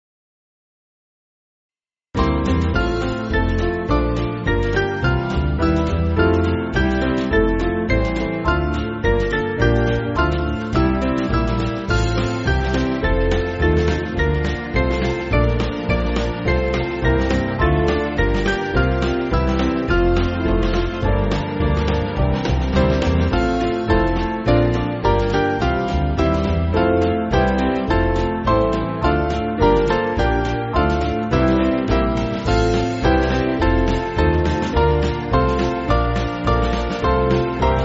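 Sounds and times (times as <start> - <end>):
band backing track for churches: 2.2 - 37.8.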